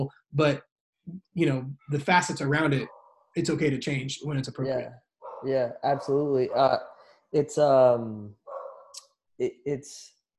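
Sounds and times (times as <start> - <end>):
speech: 0.0 - 8.4, 9.4 - 10.2
German Shepherd pitbull mix dog barking: 5.2 - 6.8, 8.5 - 9.0.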